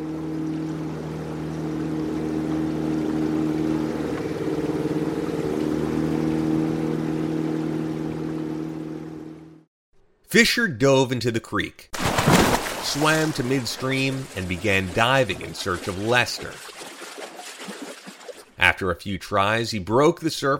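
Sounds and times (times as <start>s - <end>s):
small motorboat engine: 0.0s - 9.7s, 13.2s - 18.6s
speech: 10.3s - 16.7s, 18.7s - 20.5s.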